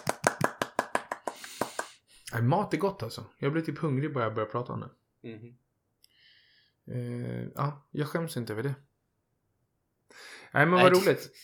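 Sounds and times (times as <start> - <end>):
hand clapping applause: 0.0 - 2.0
speech: 2.3 - 5.6, 6.9 - 8.9, 10.1 - 11.4.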